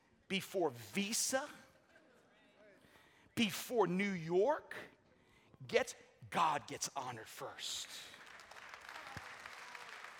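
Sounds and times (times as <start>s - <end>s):
speech: 0.3s - 1.6s, 3.4s - 5.0s, 5.6s - 8.2s
audience clapping: 7.8s - 10.1s.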